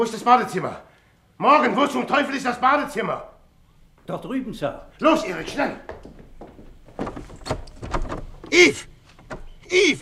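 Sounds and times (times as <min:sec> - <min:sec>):
speech: 0:00.0 - 0:03.3, 0:04.0 - 0:06.2, 0:08.5 - 0:08.9, 0:09.7 - 0:09.9
locked bathroom door being tried and rattled: 0:06.9 - 0:09.6.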